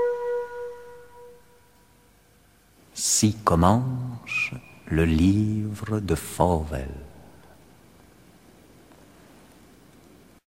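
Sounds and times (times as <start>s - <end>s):
medieval entrance fanfare: 3.0s - 7.1s.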